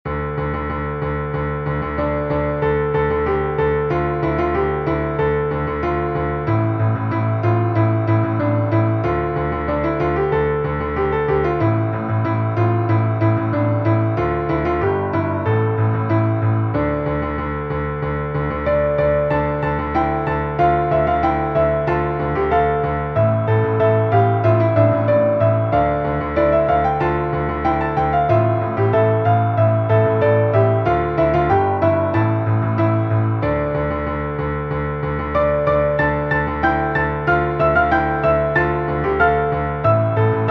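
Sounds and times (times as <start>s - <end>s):
easy piano piece for four hands: 0.0s - 40.4s.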